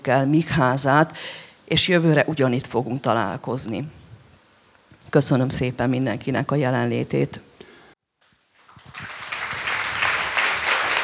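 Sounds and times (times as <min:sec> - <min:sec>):
speech: 0:00.0 - 0:04.0, 0:05.1 - 0:07.5
audience applause: 0:08.6 - 0:11.0.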